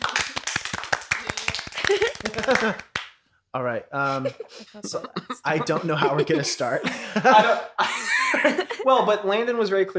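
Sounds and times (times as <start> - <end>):
hand clapping: 0.0 - 3.2
laughter: 1.8 - 2.9, 4.0 - 9.2
speech: 1.9 - 2.9, 3.5 - 9.9.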